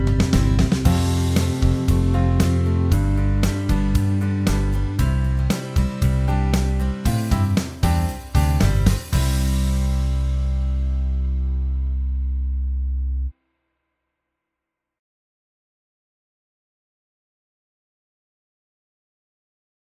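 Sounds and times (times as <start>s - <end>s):
guitar backing track: 0.0s - 13.3s.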